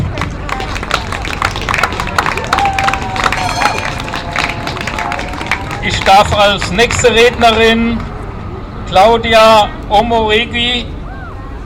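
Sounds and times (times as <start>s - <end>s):
audience clapping: 0.0s - 8.1s
speech: 6.1s - 8.1s, 8.9s - 11.0s.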